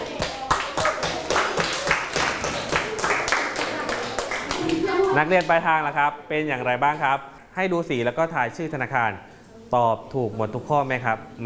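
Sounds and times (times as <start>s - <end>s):
classroom students clapping: 0.0s - 5.6s
speech: 5.2s - 11.4s.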